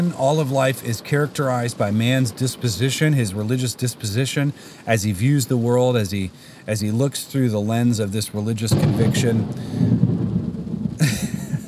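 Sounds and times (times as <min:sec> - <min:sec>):
speech: 0:00.0 - 0:10.1
low steady rumble: 0:08.7 - 0:11.6
thunder crack from nearby lightning strike: 0:08.7 - 0:11.6.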